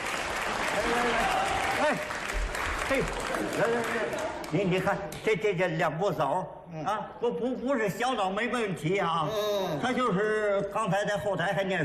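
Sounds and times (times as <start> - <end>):
audience applause: 0.0 - 4.9
speech: 1.9 - 2.2, 2.9 - 11.8.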